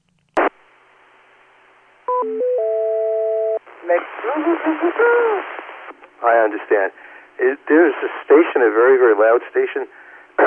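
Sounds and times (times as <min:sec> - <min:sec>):
repeater courtesy tone: 0:02.1 - 0:03.6
speech: 0:02.2 - 0:02.8, 0:03.8 - 0:05.6, 0:06.2 - 0:10.0.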